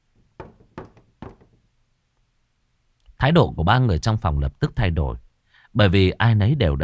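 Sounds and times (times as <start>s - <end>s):
knocking on a room door: 0.2s - 1.6s
speech: 3.2s - 6.8s.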